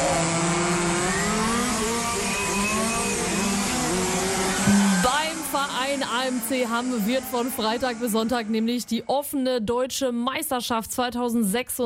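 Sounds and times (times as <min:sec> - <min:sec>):
radio-controlled model cars racing: 0:00.0 - 0:09.3
speech: 0:06.3 - 0:11.8.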